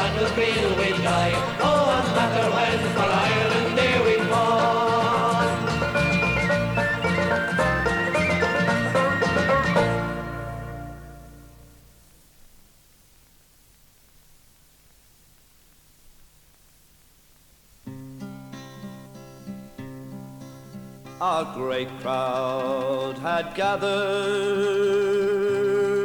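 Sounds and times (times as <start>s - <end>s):
Irish music: 0.0s - 12.1s, 17.9s - 26.0s.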